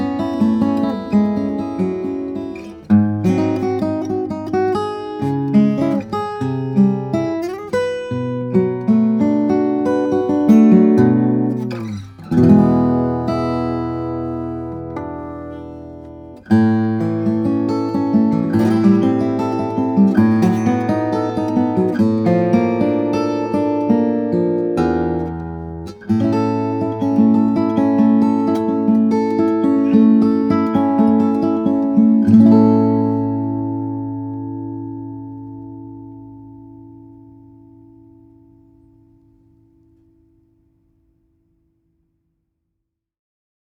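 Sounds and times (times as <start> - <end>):
Grand Concert steel string flattop guitars of Brazilian rosewood and redwood: 0.0 - 39.9.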